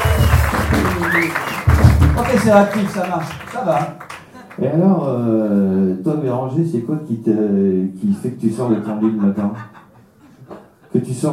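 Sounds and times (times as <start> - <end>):
audience applause: 0.0 - 4.7
speech: 1.2 - 1.5, 2.2 - 9.8, 10.9 - 11.3
laughter: 8.7 - 10.9.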